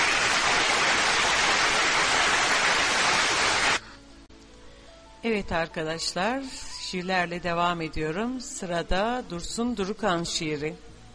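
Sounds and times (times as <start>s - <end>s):
audience applause: 0.0s - 3.8s
speech: 5.3s - 10.9s.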